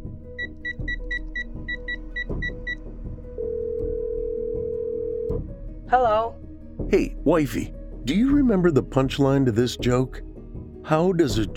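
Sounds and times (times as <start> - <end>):
steady continuous telephone tone: 3.4 - 5.3
speech: 5.9 - 10.3, 10.9 - 11.5.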